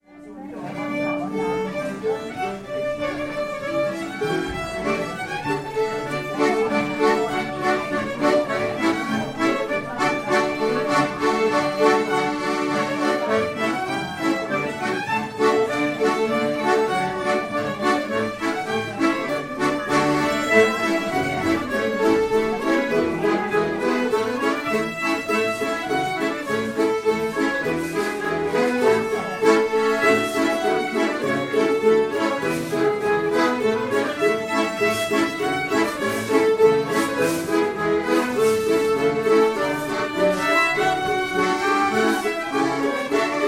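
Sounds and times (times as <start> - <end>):
ringridning polka music: 0.0 - 43.4.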